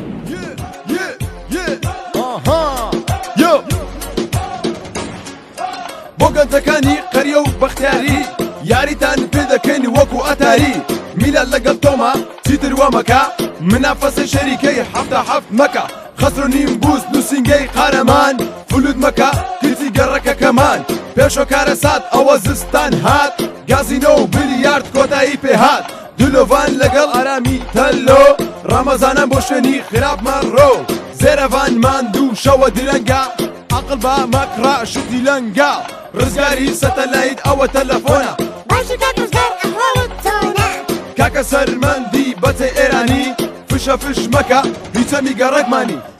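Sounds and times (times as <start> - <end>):
rap music: 0.2 - 46.1.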